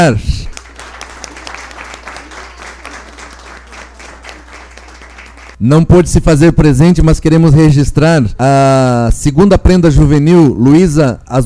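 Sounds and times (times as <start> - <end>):
speech: 0.0 - 0.3, 5.6 - 11.4
audience applause: 0.5 - 5.6.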